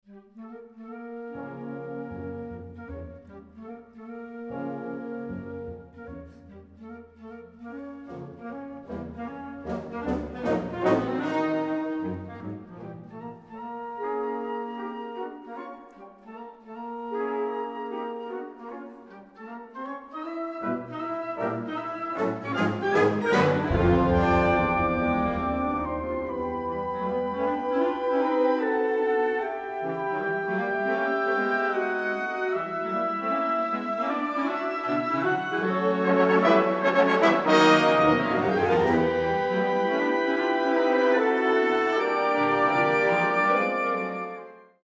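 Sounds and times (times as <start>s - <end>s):
wind orchestra playing a caprice: 0.4s - 44.8s.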